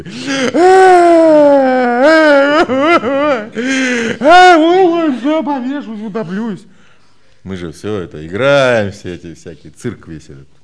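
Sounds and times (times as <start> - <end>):
speech: 0.0 - 1.0, 3.0 - 6.7, 7.4 - 10.6
voice mimicking exaggerated crying with wailing and sobbing: 0.1 - 5.3.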